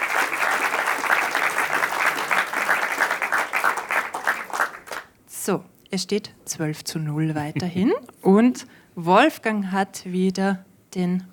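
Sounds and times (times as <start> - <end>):
audience applause: 0.0 - 5.1
speech: 5.5 - 11.3.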